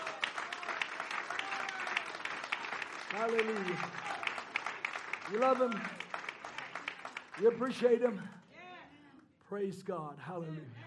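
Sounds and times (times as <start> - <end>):
audience applauding: 0.0 - 8.4
speech: 3.1 - 4.2, 5.3 - 6.0, 7.4 - 8.4, 9.5 - 10.8.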